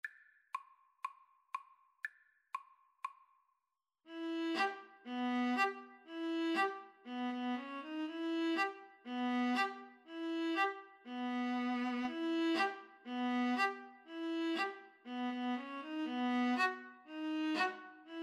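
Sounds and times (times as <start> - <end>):
viola playing Bulgarish dance: 4.1 - 18.2.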